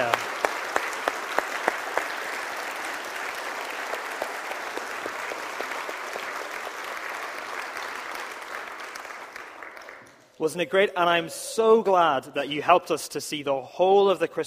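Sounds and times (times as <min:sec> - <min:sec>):
audience applause: 0:00.0 - 0:10.4
speech: 0:10.4 - 0:14.4.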